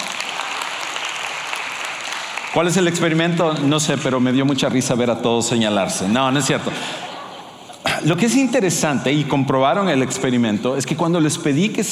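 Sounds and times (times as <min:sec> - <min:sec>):
audience applause: 0:00.0 - 0:03.8
speech: 0:02.5 - 0:07.0, 0:08.0 - 0:11.8
laughter: 0:05.8 - 0:08.3.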